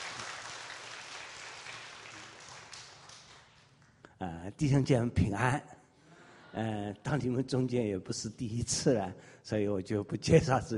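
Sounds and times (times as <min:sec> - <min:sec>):
audience applause: 0:00.0 - 0:03.6
speech: 0:04.2 - 0:05.8, 0:06.6 - 0:10.7.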